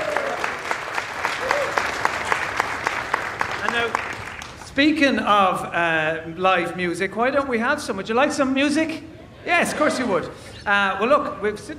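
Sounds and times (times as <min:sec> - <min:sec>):
audience applause: 0:00.0 - 0:04.6
speech: 0:03.7 - 0:04.1, 0:04.8 - 0:11.7.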